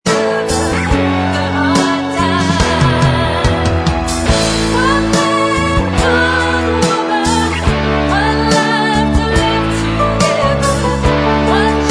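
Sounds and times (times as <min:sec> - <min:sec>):
backing track: 0:00.1 - 0:11.8
backing vocals: 0:01.5 - 0:06.8.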